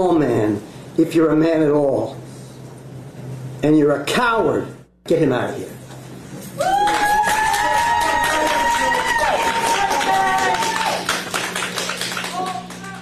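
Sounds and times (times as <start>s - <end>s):
speech: 0.0s - 2.3s, 3.6s - 5.8s
sustained cheering whoop: 6.6s - 11.2s
courtroom applause from a crowd: 6.6s - 13.0s.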